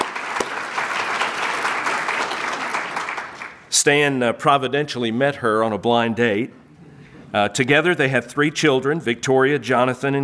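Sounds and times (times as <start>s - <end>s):
audience applause: 0.0s - 3.7s
speech: 3.8s - 6.6s, 7.3s - 10.2s.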